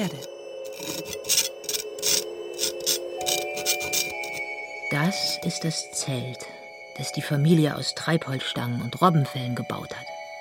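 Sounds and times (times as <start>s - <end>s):
speech: 0.0s - 1.0s, 4.9s - 10.1s
knife scratching figures into snow: 0.1s - 4.4s.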